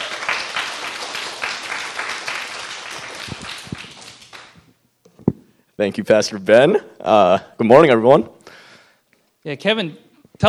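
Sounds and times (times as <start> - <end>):
audience applause welcoming a speaker introduced by a pastor: 0.0 - 4.6
speech: 5.8 - 8.4, 9.4 - 10.4.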